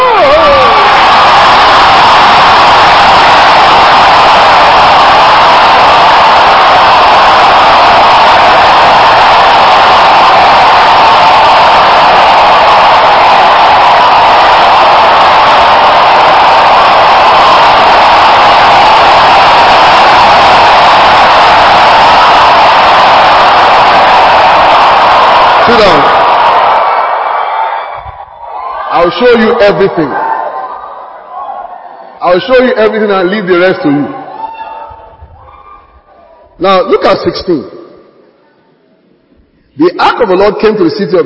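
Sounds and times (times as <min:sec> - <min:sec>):
audience shouting: 0:00.0 - 0:32.4
speech: 0:29.1 - 0:30.2, 0:32.3 - 0:34.2, 0:36.6 - 0:37.7, 0:40.2 - 0:41.2.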